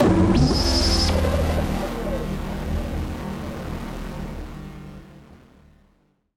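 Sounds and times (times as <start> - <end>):
malfunctioning synth: 0.0 - 5.2.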